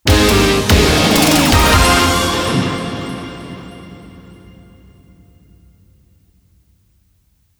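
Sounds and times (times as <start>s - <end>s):
large win sound: 0.0s - 4.9s.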